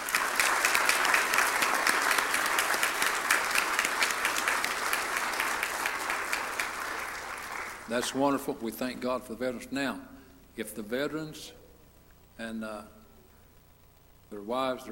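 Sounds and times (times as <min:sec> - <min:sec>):
audience applause: 0:00.0 - 0:08.4
speech: 0:07.9 - 0:11.6, 0:12.4 - 0:13.0, 0:14.3 - 0:14.8.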